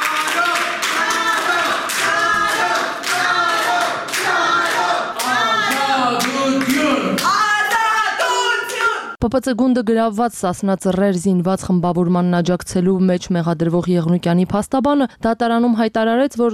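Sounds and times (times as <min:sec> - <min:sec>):
packed courtroom hall rhythmic hand clapping: 0:00.0 - 0:09.0
packed courtroom hall crowd chanting: 0:00.0 - 0:09.2
speech: 0:09.2 - 0:16.5.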